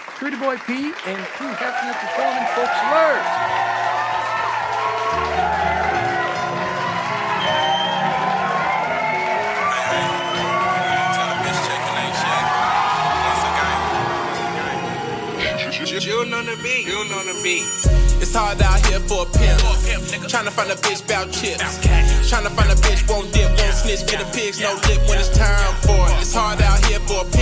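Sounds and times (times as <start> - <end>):
audience applause and cheering: 0.0 - 27.3
speech: 0.2 - 3.9, 16.0 - 27.3.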